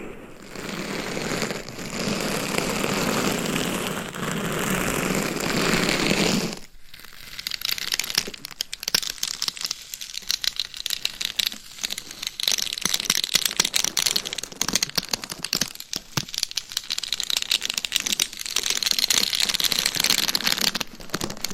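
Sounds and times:
gloves rubbing on a binaural mic: 0.0s - 6.7s
gloves and nails tapping and scratching on a binaural mic: 0.0s - 21.5s.

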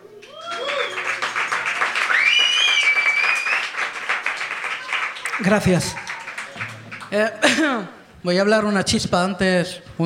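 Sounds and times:
concert audience applause: 0.2s - 7.6s
speech: 5.4s - 6.1s, 7.1s - 10.0s.

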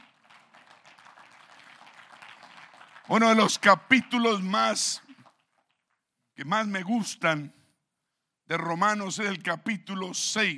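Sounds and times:
audience applause: 0.0s - 5.8s
speech: 3.1s - 5.1s, 6.4s - 7.6s, 8.5s - 10.5s.

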